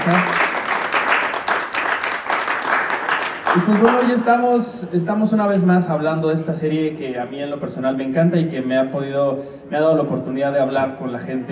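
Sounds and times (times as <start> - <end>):
speech: 0.0 - 0.4, 3.6 - 11.5
audience applause: 0.0 - 4.2.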